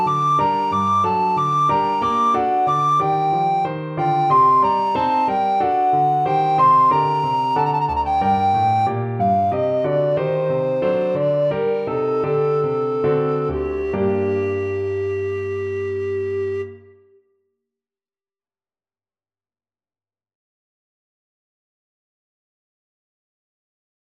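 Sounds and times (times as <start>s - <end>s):
recorder playing slowly: 0.0s - 17.2s.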